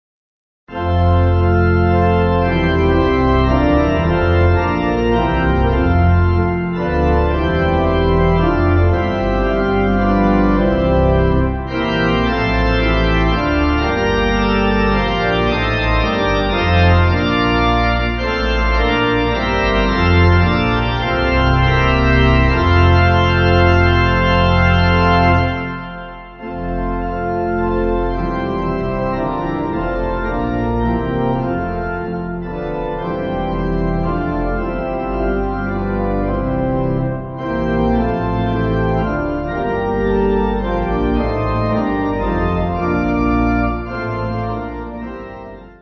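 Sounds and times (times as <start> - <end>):
church pipe organ backing music: 0.7 - 45.8.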